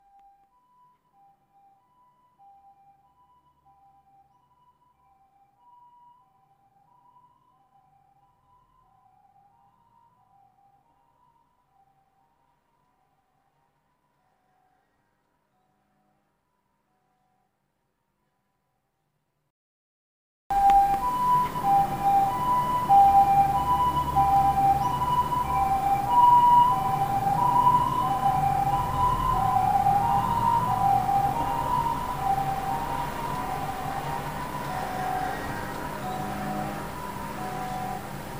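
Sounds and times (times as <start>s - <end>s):
siren: 0.0s - 17.6s, 20.5s - 38.3s.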